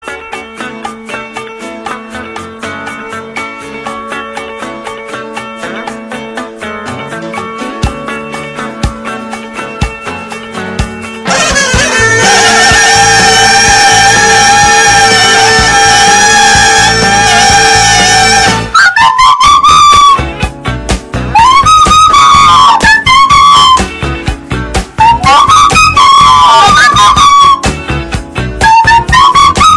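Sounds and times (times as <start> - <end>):
flute version of a meme song: 11.3 - 20.4, 21.3 - 24.1, 25.0 - 28.0, 28.6 - 29.7.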